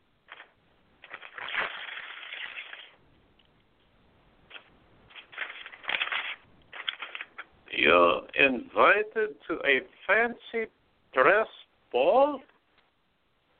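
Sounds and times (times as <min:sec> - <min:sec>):
envelope being torn open with crisp paper ripping: 0:00.3 - 0:03.0, 0:04.5 - 0:07.5
speech: 0:07.9 - 0:12.5.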